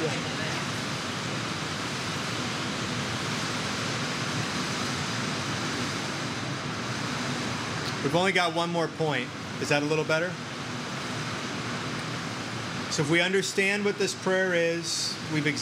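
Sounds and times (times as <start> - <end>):
rain: 0.0 - 8.1, 10.4 - 13.0
speech: 8.0 - 10.4, 13.0 - 15.6.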